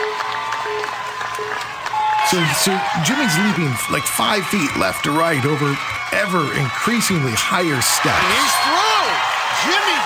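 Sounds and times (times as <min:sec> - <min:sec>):
shouts and whistles: 0:00.0 - 0:05.8, 0:07.9 - 0:10.0
crowd cheering and applauding: 0:00.0 - 0:10.0
speech: 0:02.3 - 0:10.0.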